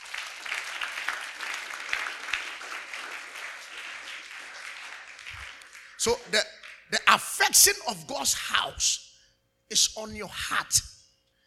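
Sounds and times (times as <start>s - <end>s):
audience applause: 0.0s - 7.0s
speech: 6.0s - 9.1s, 9.7s - 10.9s.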